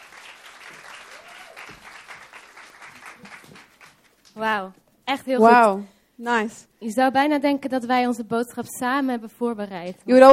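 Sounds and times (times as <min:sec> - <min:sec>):
audience applause: 0:00.0 - 0:04.4
speech: 0:04.4 - 0:10.3.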